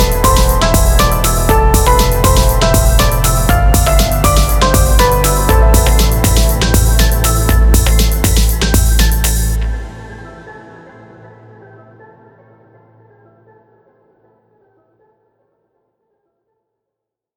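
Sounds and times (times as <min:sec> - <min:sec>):
music track: 0:00.0 - 0:11.7.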